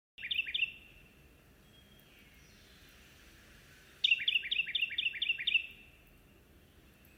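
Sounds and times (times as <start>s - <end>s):
Carolina wren song: 0.2s - 7.1s.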